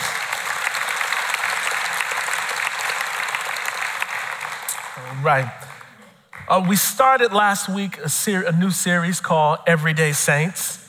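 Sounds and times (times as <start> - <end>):
audience hand clapping: 0.0 - 6.8
speech: 5.2 - 5.6, 6.5 - 10.8.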